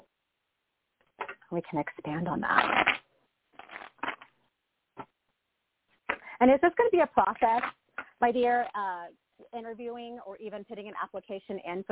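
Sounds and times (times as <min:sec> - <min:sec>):
speech: 0:01.5 - 0:03.0, 0:06.4 - 0:11.8
deck of cards being shuffled: 0:03.6 - 0:04.4, 0:07.4 - 0:08.2.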